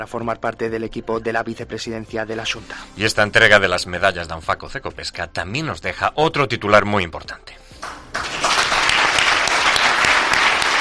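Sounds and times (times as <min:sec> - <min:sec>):
speech: 0:00.0 - 0:07.9
audience ovation: 0:07.8 - 0:10.8.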